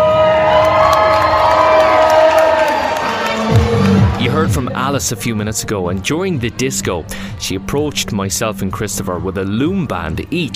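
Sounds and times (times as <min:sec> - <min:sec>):
children cheering and shouting at a disco: 0:00.0 - 0:06.2
speech: 0:04.4 - 0:10.5.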